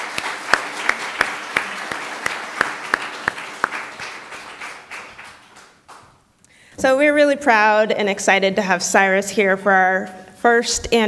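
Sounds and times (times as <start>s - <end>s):
audience applause: 0.0s - 6.1s
speech: 6.8s - 11.0s.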